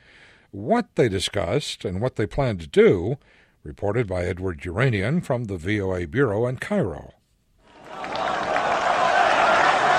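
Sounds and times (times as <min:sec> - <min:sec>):
speech: 0:00.5 - 0:07.2
crowd of worshippers applauding: 0:07.7 - 0:09.9.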